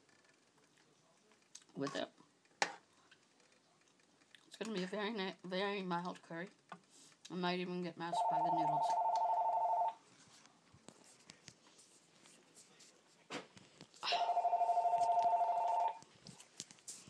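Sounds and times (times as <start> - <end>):
speech: 1.8 - 2.2, 4.6 - 6.6, 7.3 - 9.0
telephone ringing with electronic trill: 8.1 - 10.0, 14.0 - 16.0.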